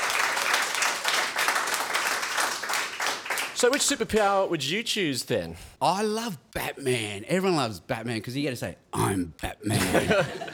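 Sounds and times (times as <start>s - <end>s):
round of applause: 0.0s - 4.0s
speech: 3.6s - 10.5s
laughter: 9.6s - 10.5s.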